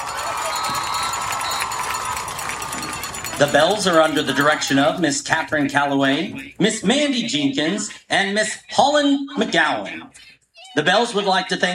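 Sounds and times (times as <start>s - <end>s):
audience applause: 0.0s - 5.6s
speech: 3.4s - 11.7s.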